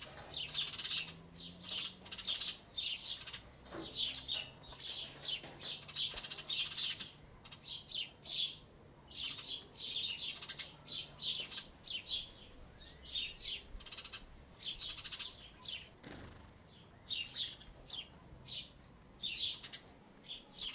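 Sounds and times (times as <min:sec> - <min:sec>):
birds in a yard: 0:00.0 - 0:20.7.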